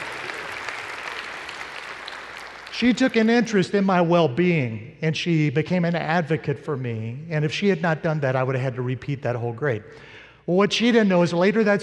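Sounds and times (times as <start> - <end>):
audience applause: 0.0 - 3.3
speech: 2.8 - 11.8.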